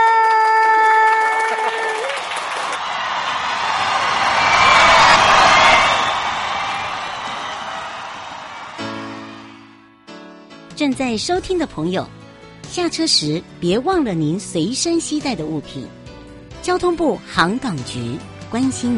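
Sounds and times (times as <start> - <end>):
audience applause: 0.0 - 9.9
speech: 10.9 - 12.2, 12.8 - 16.0, 16.6 - 18.9.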